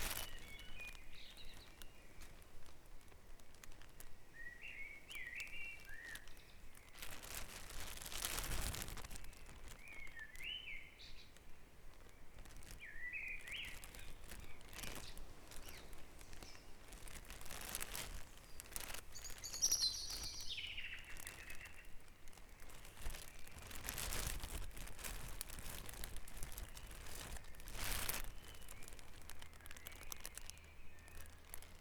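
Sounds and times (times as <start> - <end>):
bird song: 0.0 - 2.4, 4.3 - 7.2, 9.2 - 24.3, 26.4 - 31.8
rustling crackling noise: 0.0 - 31.8.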